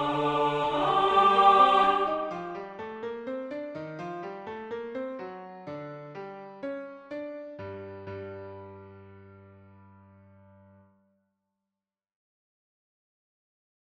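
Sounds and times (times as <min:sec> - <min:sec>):
soprano singing: 0:00.0 - 0:02.8.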